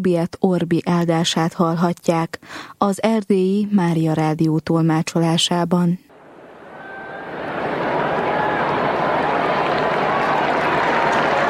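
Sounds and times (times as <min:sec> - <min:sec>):
speech: 0:00.0 - 0:06.1
pilgrims applauding and cheering in square: 0:06.1 - 0:11.4.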